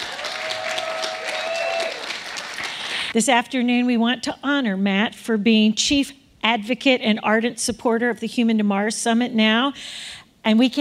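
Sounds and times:
round of applause: 0.0s - 3.1s
speech: 3.1s - 10.7s.

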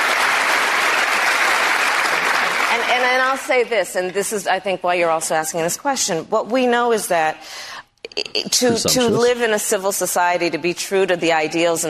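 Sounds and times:
crowd cheering: 0.0s - 3.1s
speech: 2.9s - 11.8s.

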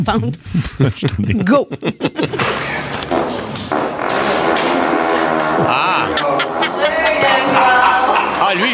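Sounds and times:
speech: 0.0s - 2.7s, 7.4s - 8.7s
laughter: 0.8s - 3.0s, 5.6s - 8.7s
pig fart sound effect: 2.4s - 7.0s.

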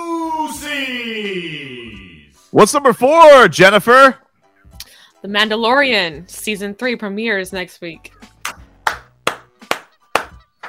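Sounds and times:
speech: 2.6s - 4.2s, 5.2s - 8.2s
hands clapping: 8.4s - 10.6s.

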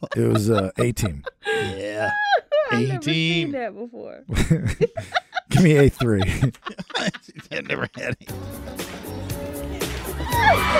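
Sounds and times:
laughter: 0.0s - 3.5s, 4.3s - 10.7s
speech: 0.1s - 8.9s
crowd cheering: 8.8s - 10.7s.

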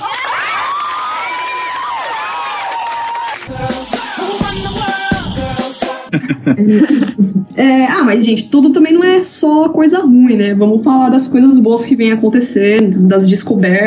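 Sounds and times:
crowd clapping: 0.0s - 4.4s
crowd cheering and whooping: 0.0s - 5.1s
laughter: 6.1s - 7.5s
speech: 6.5s - 13.8s.

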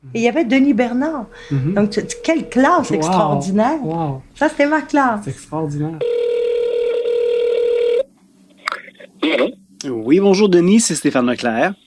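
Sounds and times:
speech: 0.1s - 6.2s, 9.2s - 11.8s
telephone dial tone: 6.0s - 8.1s.

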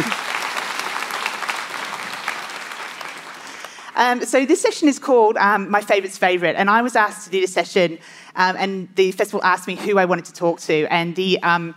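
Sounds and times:
festival audience applause welcoming an author on stage: 0.0s - 3.9s
speech: 4.0s - 11.7s.

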